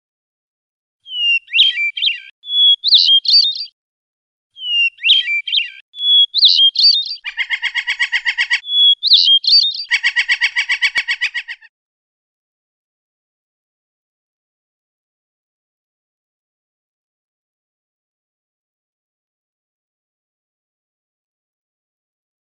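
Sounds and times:
Oriental magpie-robin singing rolling song: 0:01.0 - 0:03.8, 0:04.6 - 0:11.7.

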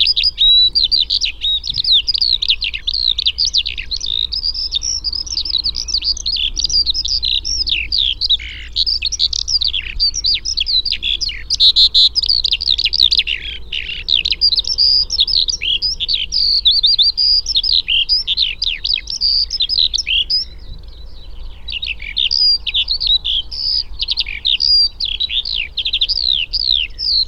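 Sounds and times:
Eurasian skylark song: 0:00.0 - 0:27.2.

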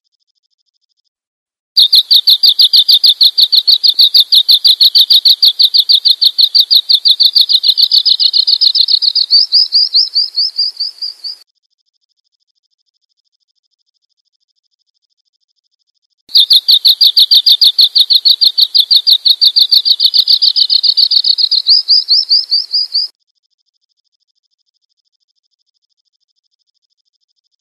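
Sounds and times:
bird chirping: 0:01.8 - 0:11.4, 0:16.3 - 0:23.1.

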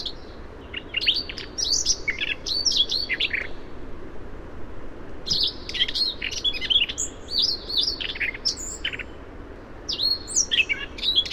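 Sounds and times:
Siberian rubythroat singing a varied song of whistles, chirps and scratchy notes: 0:00.0 - 0:03.6, 0:05.2 - 0:09.2, 0:09.9 - 0:11.3.

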